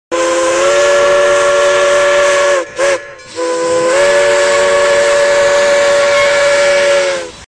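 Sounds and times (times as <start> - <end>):
horn: 0.1 - 7.4.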